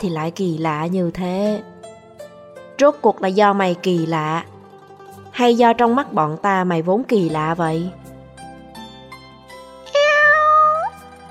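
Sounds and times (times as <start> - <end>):
speech: 0.0 - 1.7, 2.8 - 4.5, 5.4 - 8.0
black cat meowing: 9.9 - 11.0.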